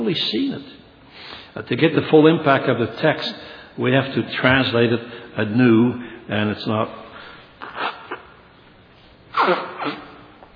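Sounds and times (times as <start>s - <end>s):
speech: 0.0s - 7.0s, 9.4s - 10.0s
person sniffling from a teary eye: 7.6s - 8.4s, 9.3s - 10.3s.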